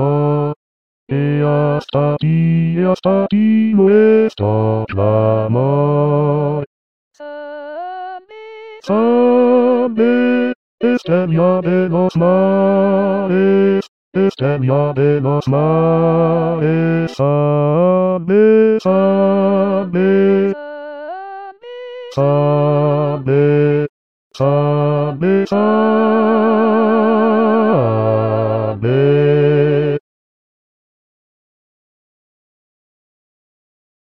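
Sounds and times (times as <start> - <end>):
bass voices singing a sailors' hymn: 0.0 - 6.7, 8.9 - 20.6, 22.2 - 30.0.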